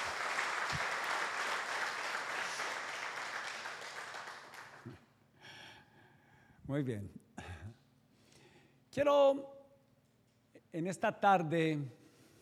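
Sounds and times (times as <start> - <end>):
audience applause: 0.0 - 5.0
speech: 6.7 - 7.8, 9.0 - 9.6, 10.7 - 12.0.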